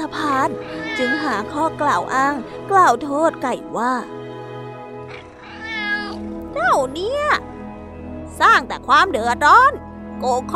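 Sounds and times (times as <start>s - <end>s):
speech: 0.4s - 4.2s, 6.6s - 7.5s, 8.4s - 10.5s
cat meowing: 0.5s - 1.6s, 5.1s - 6.3s.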